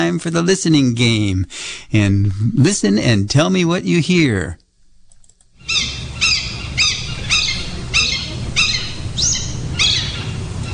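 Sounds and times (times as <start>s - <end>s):
speech: 0.0s - 4.6s
low rumble: 0.8s - 10.7s
hawk shrill high-pitched cries in the morning: 5.6s - 10.4s.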